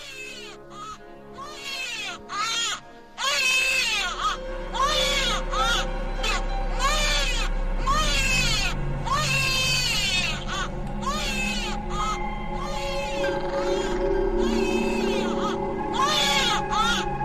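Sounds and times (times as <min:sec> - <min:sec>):
newborn baby crying: 0:00.0 - 0:17.2
faint low rumble: 0:05.5 - 0:17.2.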